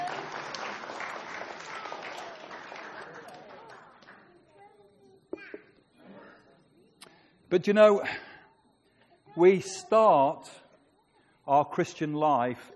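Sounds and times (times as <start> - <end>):
audience clapping: 0.0 - 4.4
speech: 7.5 - 8.3, 9.4 - 10.6, 11.5 - 12.7.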